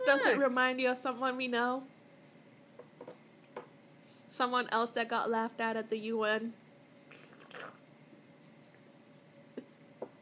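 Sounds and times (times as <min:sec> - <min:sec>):
speech: 0:00.0 - 0:02.0, 0:04.3 - 0:06.6
person sipping tea: 0:07.1 - 0:07.8.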